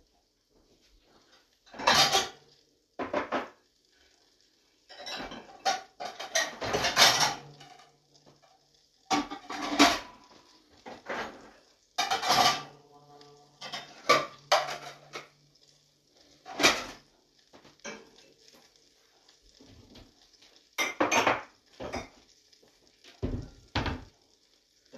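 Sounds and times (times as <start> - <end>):
faint steady high hiss: 0.0 - 24.9
cookware and utensils clattering while cooking eggs and bell peppers in a pan: 1.7 - 3.6, 4.9 - 15.4, 16.3 - 17.1, 17.8 - 18.4, 20.7 - 22.3.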